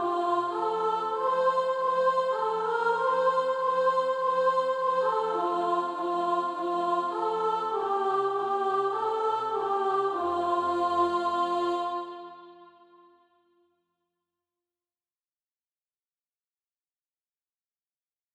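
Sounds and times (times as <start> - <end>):
soprano singing SATB practice music: 0.0 - 12.8.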